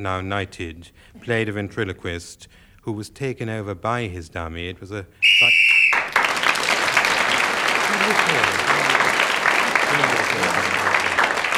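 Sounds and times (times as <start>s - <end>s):
speech: 0.0s - 5.5s
referee's whistle: 5.2s - 6.3s
laughter: 5.4s - 11.5s.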